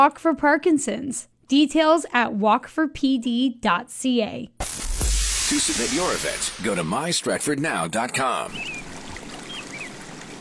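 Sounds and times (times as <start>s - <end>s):
speech: 0.0s - 4.8s, 5.5s - 8.8s
Avon River water flowing in Stratford: 8.2s - 10.3s.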